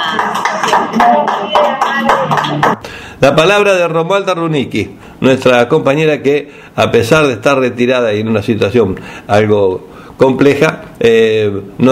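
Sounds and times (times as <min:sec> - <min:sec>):
group applauding: 0:00.0 - 0:02.8
speech: 0:00.7 - 0:11.8.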